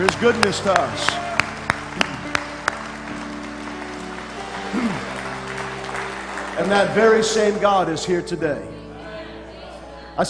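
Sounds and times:
speech: 0.0 - 1.2, 4.7 - 5.1, 6.6 - 8.7
audience clapping: 0.0 - 7.9.

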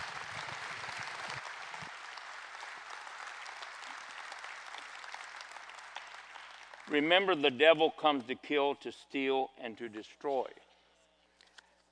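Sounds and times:
audience applause: 0.0 - 7.0
speech: 6.9 - 10.6.

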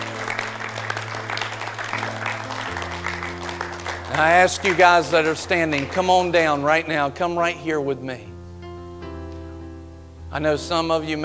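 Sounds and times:
audience clapping: 0.0 - 7.0
speech: 4.2 - 8.3, 10.3 - 11.2.

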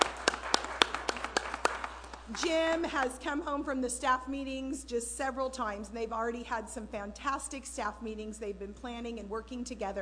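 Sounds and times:
sparse hand claps during a church service: 0.0 - 2.4
speech: 2.3 - 10.0.

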